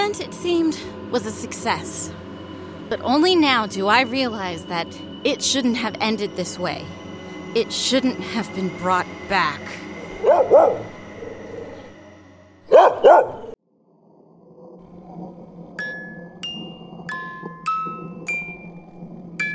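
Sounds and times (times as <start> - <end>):
speech: 0.1 - 2.3, 2.9 - 7.0, 7.6 - 10.9, 12.8 - 13.4
dog barking: 10.2 - 10.9, 12.7 - 13.6.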